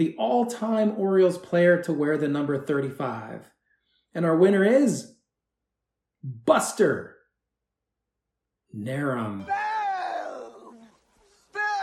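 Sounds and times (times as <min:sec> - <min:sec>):
speech: 0:00.0 - 0:03.6, 0:04.2 - 0:05.2, 0:06.2 - 0:07.2, 0:08.7 - 0:09.7
crowd booing: 0:09.4 - 0:11.8.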